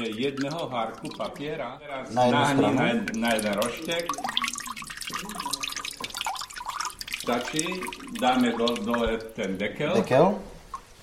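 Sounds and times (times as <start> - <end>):
speech: 0.0 - 4.4, 7.2 - 10.6
water dripping off a tilted papermaking plate: 0.0 - 11.0.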